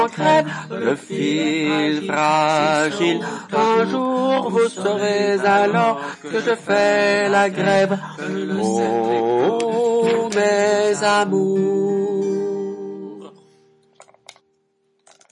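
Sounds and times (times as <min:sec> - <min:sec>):
male soprano and alto choir singing a chorale: 0:00.0 - 0:12.0.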